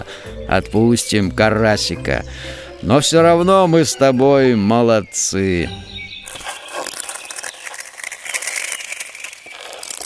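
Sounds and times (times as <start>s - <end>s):
speech: 0.0s - 5.9s
ice cracking on a frozen lake: 6.2s - 10.0s.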